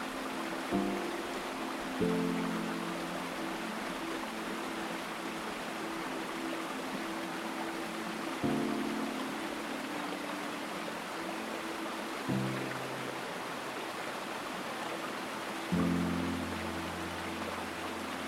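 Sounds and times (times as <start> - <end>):
rushing water: 0.0 - 18.2.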